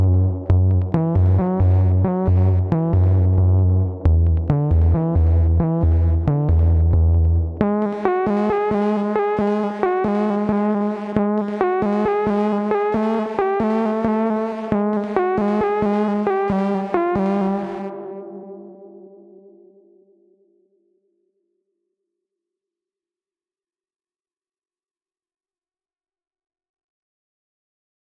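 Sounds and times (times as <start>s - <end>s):
industrial bass: 0.0s - 18.0s.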